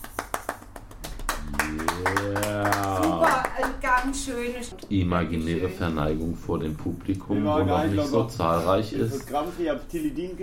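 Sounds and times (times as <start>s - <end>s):
applause: 0.0s - 4.2s
speech: 3.6s - 10.4s.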